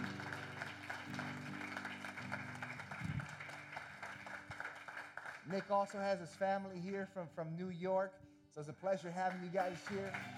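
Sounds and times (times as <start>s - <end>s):
audience applause: 0.0s - 6.4s, 9.2s - 10.3s
speech: 5.5s - 10.3s.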